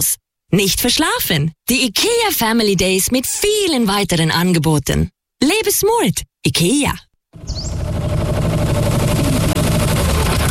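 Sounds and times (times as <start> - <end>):
speech: 0.0 - 7.7
new tractor engine running: 7.4 - 10.4.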